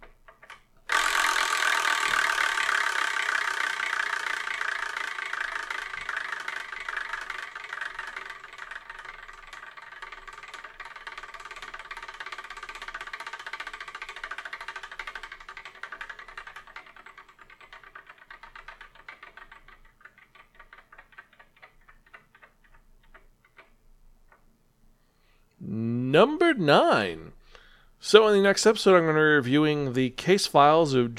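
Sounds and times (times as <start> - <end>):
selection wheel being spun: 0.0 - 24.6
speech: 26.1 - 27.3, 28.0 - 31.1.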